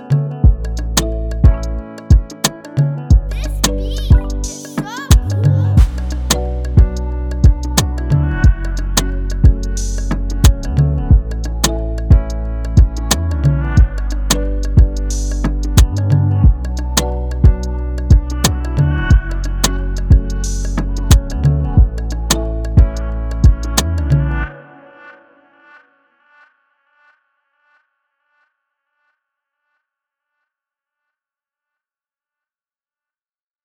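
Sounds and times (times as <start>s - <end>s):
music beat in D major: 0.1s - 24.3s.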